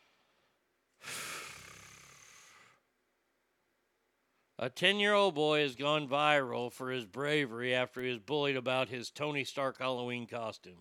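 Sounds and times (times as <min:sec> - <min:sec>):
person taking a long breath: 0:00.0 - 0:02.8
speech: 0:04.6 - 0:10.7.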